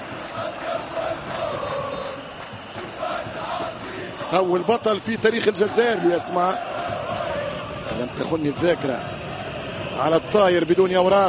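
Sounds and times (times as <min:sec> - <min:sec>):
Soustara supporters cheering and chanting at an Algerian football match: 0:00.0 - 0:11.2
speech: 0:04.3 - 0:06.7, 0:08.0 - 0:09.2, 0:10.0 - 0:11.2.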